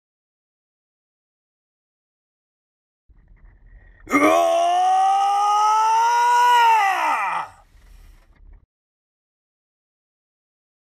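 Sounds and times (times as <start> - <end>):
voice wailing uoooooooo: 4.1 - 7.6.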